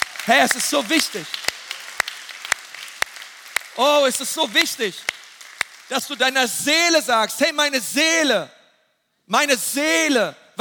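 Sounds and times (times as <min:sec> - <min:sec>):
audience applause: 0:00.0 - 0:06.2
speech: 0:00.2 - 0:01.4, 0:03.8 - 0:05.2, 0:05.9 - 0:08.6, 0:09.3 - 0:10.6.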